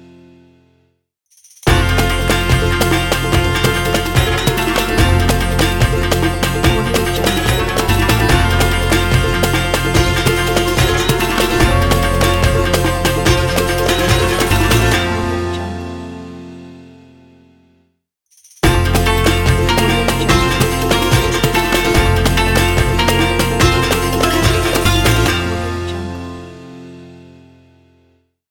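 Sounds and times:
Arabic intro logo music: 1.7 - 16.2, 18.6 - 26.0.

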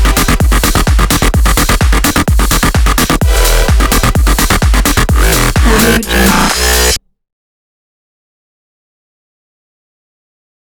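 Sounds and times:
experimental bass music: 0.0 - 7.0.

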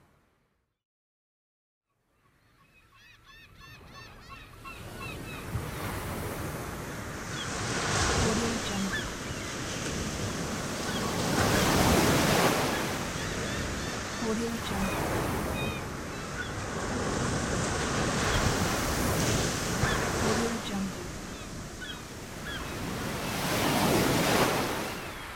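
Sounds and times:
seagull calling: 2.2 - 6.2, 7.1 - 9.8, 10.5 - 16.9, 19.6 - 25.3
beach waves: 3.8 - 25.3.

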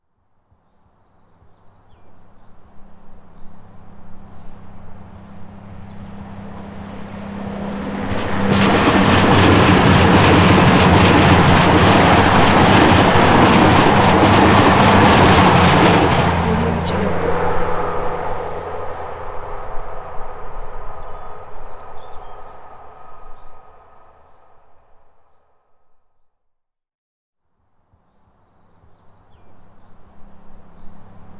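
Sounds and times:
goods train passing: 5.6 - 20.5.

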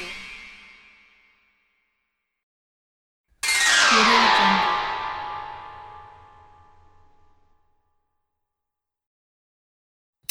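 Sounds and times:
weird transition sound effect: 3.6 - 7.0.

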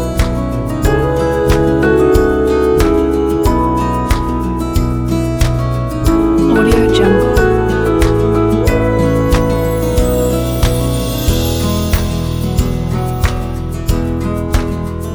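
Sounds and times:
soft corporate background music: 0.0 - 15.1.

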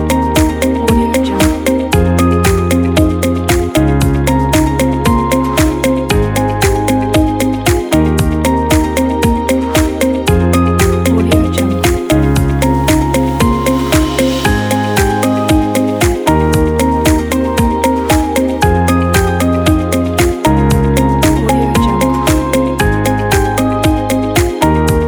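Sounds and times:
uplifting corporate motivational music: 0.0 - 25.0.

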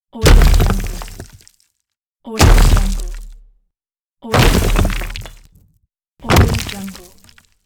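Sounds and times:
rock impact: 0.2 - 1.3, 2.4 - 3.4, 4.4 - 5.5, 6.2 - 7.0.

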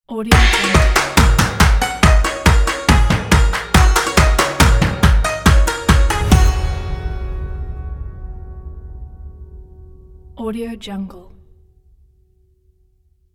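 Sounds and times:
Chinese logo jingle: 0.3 - 10.4.

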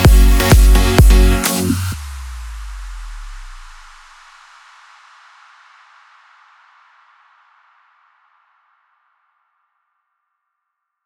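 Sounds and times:
electronic dance music: 0.0 - 2.2.

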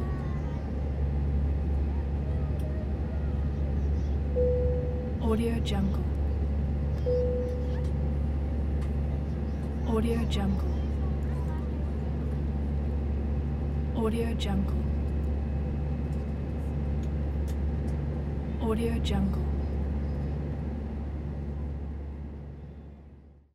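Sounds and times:
plane taking off heard from the interior: 0.0 - 23.4.

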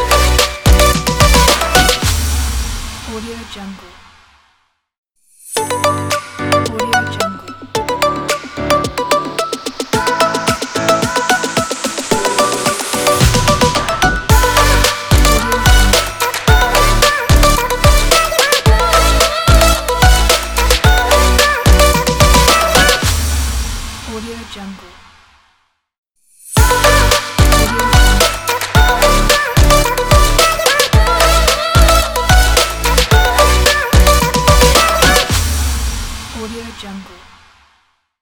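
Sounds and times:
uplifting lifestyle pop logo: 0.0 - 2.7, 5.5 - 23.5, 26.6 - 35.7.

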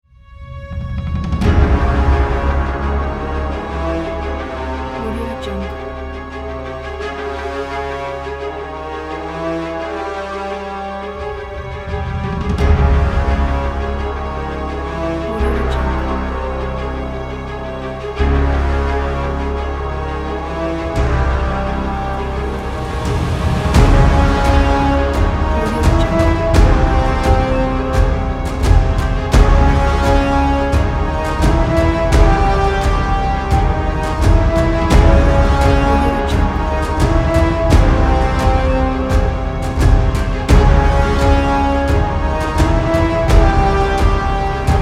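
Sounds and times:
majestic villain music: 0.1 - 44.8.

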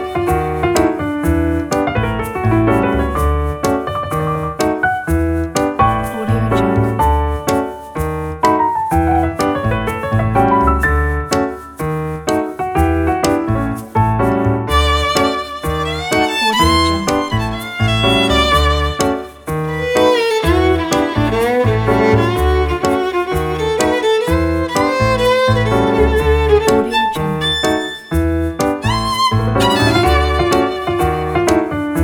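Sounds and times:
violin: 0.0 - 0.9, 14.7 - 32.0
jazz piano: 0.0 - 32.0.

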